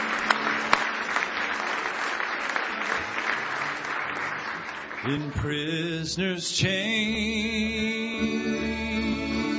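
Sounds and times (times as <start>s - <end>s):
audience clapping hands in praise: 0.0s - 5.7s
speech: 5.0s - 9.4s.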